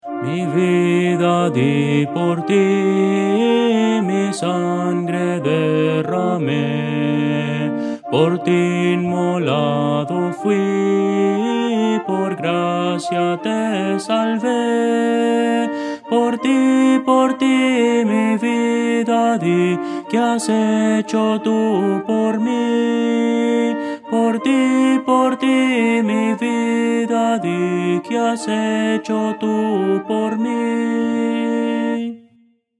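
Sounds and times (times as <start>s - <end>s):
Christian hymn melody: 0.0s - 32.4s.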